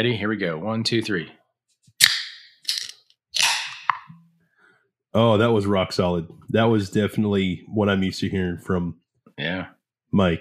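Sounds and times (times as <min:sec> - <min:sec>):
speech: 0:00.0 - 0:01.4, 0:05.2 - 0:10.3
beer cans cracking open: 0:02.0 - 0:04.1.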